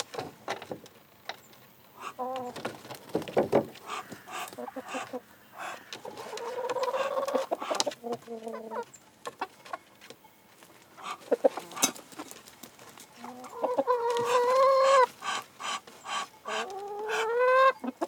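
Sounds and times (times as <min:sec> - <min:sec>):
duck quacking in an open-air cage: 0:03.8 - 0:07.9, 0:11.0 - 0:12.0, 0:13.5 - 0:18.0.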